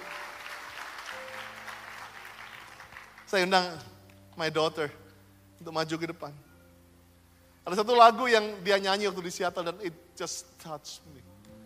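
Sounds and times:
audience applauding: 0.0s - 3.5s
speech: 3.3s - 5.0s, 5.6s - 6.5s, 7.6s - 11.3s.

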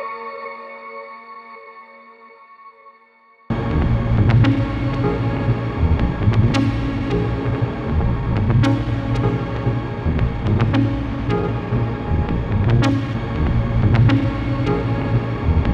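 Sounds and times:
synthesised rumbling texture: 3.5s - 15.7s.

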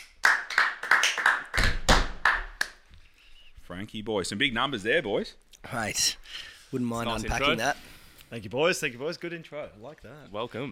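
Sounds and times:
clapping for a guest being welcomed: 0.0s - 2.9s
speech: 3.8s - 10.7s.

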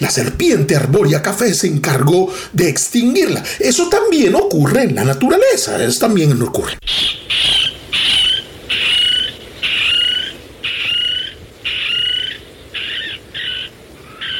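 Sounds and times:
speech: 0.0s - 7.6s
Micronesian kingfisher calling: 6.8s - 14.3s.

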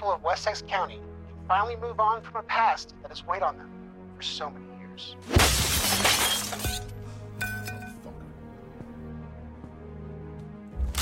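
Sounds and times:
speech: 0.0s - 7.0s
TV being smashed with shattering glass: 5.3s - 8.1s
falling glass pieces clinking and tinkling: 5.8s - 8.0s.

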